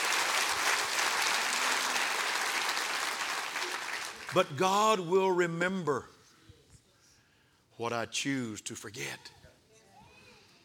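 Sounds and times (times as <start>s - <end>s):
audience clapping hands: 0.0s - 4.8s
speech: 4.3s - 6.1s, 7.8s - 9.4s.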